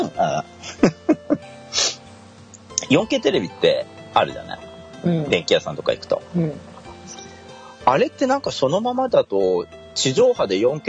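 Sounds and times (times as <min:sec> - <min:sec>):
speech: 0:00.0 - 0:01.0, 0:02.9 - 0:06.7, 0:07.9 - 0:10.8
hitching breaths: 0:06.7 - 0:07.9.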